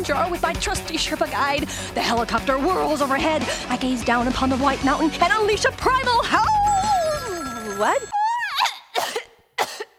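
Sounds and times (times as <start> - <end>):
speech: 0.0 - 6.7, 7.8 - 8.1
cough: 8.7 - 9.9.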